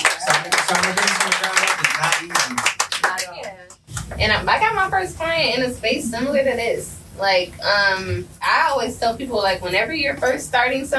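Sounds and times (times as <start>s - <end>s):
audience clapping: 0.0s - 4.2s
speech: 4.2s - 10.9s.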